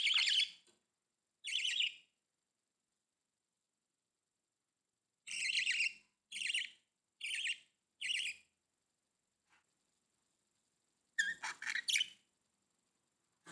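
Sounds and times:
budgerigar chirping: 0.0 - 0.6, 1.4 - 2.0, 5.3 - 8.4, 11.2 - 12.2.

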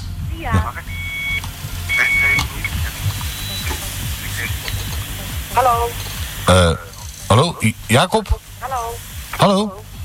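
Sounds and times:
crackling hissy phone line: 0.0 - 10.0
speech: 0.4 - 1.0, 5.6 - 9.8
answering machine beep: 0.5 - 6.0.

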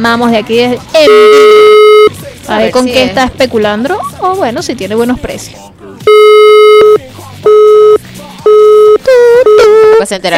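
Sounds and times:
speech: 0.0 - 1.5, 2.5 - 5.8, 9.4 - 10.3
telephone busy signal on a call to a local grocery shop: 1.1 - 2.2, 6.1 - 10.0.

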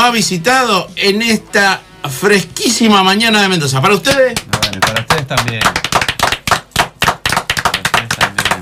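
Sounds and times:
speech: 0.0 - 5.8
small crowd clapping: 4.0 - 8.6.

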